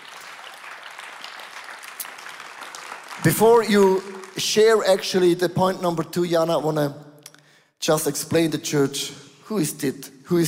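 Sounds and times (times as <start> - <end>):
audience applause: 0.0 - 4.8
speech: 3.2 - 7.0, 7.8 - 10.4.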